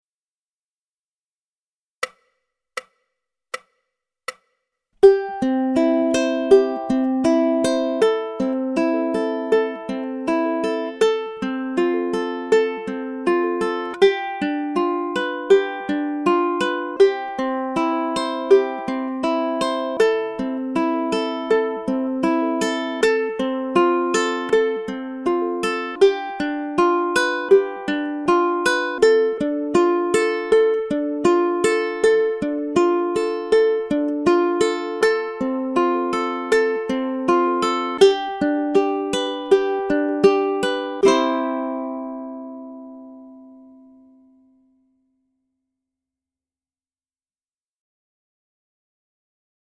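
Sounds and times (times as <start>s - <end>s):
fingerstyle ukulele study: 5.0s - 44.5s.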